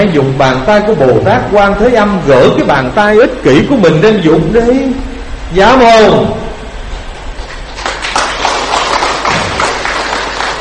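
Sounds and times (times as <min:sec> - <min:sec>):
speech: 0:00.0 - 0:06.4
sparse hand clapping from audience: 0:07.4 - 0:10.5.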